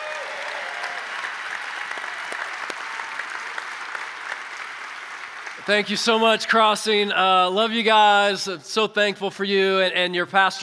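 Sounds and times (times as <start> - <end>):
church audience applauding to welcome a guest speaker: 0.0 - 6.2
speech: 5.6 - 10.6.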